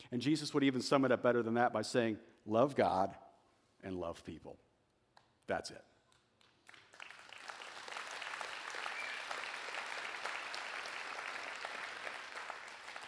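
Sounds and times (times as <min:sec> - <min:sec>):
speech: 0:00.0 - 0:03.2, 0:03.8 - 0:04.7, 0:05.5 - 0:05.9
audience clapping: 0:06.1 - 0:13.0.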